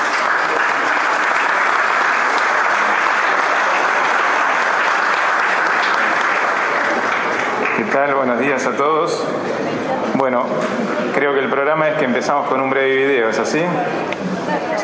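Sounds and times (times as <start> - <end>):
loud audience applause: 0.0 - 8.8
speech: 8.0 - 14.8.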